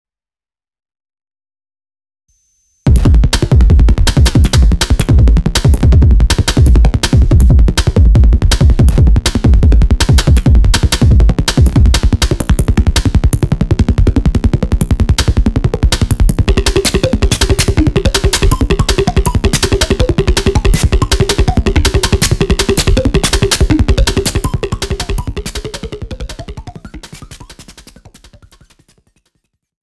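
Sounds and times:
music beat: 2.9 - 29.1.

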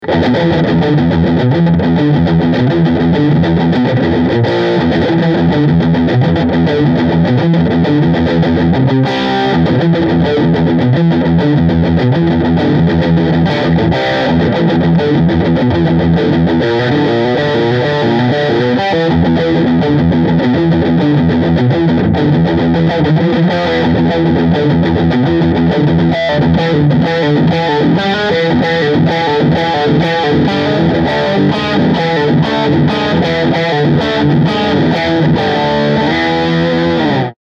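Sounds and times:
Peavey Solo full overdrive scooped guitar: 0.0 - 37.4.

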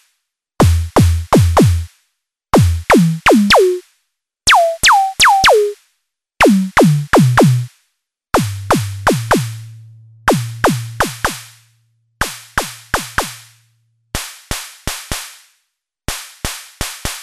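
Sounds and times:
MODOR DR2 analog snare drum: 0.6 - 1.9, 2.6 - 3.8, 4.5 - 5.8, 6.4 - 7.7, 8.4 - 9.8, 10.3 - 11.6, 12.2 - 13.5.

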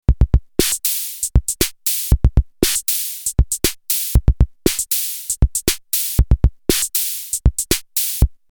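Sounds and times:
EMW T-Drum 70 drum kit: 0.0 - 8.4.

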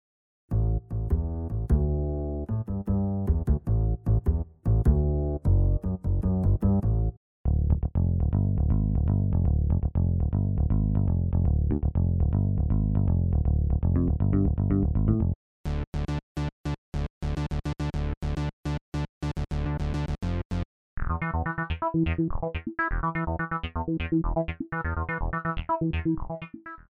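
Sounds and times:
bass: 0.5 - 26.8.

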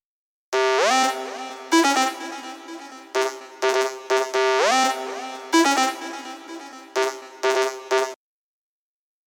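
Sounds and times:
melodic loops: 0.6 - 8.2.

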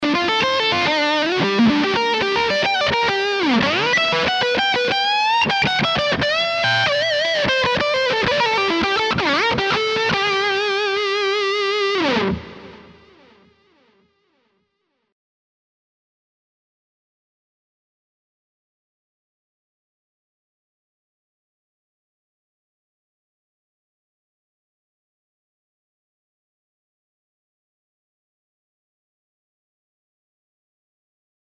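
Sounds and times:
Les Paul 50s high-gain electric guitar lead: 0.0 - 14.5.

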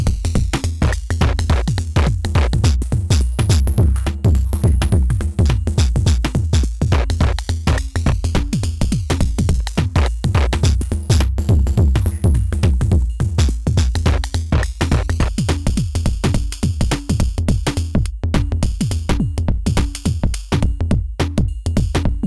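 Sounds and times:
drum synthesizer pattern generator pattern: 0.0 - 22.2.

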